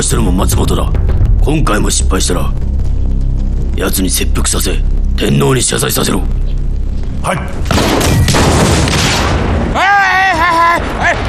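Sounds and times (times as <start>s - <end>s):
speech: 0.0s - 2.7s, 3.8s - 6.6s, 7.2s - 11.2s
explosive blast: 0.0s - 9.8s
man shouting: 9.8s - 11.2s.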